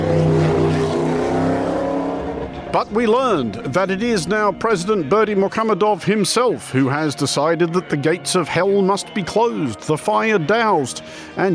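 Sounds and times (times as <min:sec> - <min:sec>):
car engine droning and revving around a burning gas crater in Turkmenistan: 0:00.0 - 0:05.8
speech: 0:02.8 - 0:11.5.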